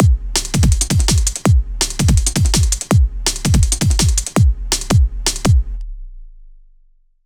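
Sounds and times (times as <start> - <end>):
breakbeat drums: 0.0 - 5.8.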